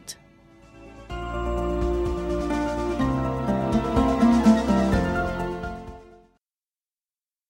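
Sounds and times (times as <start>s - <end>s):
jingle: 0.7s - 6.3s.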